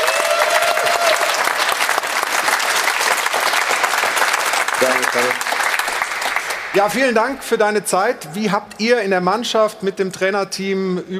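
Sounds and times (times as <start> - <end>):
studio audience applause: 0.0 - 7.3
speech: 4.8 - 5.6, 6.8 - 11.1.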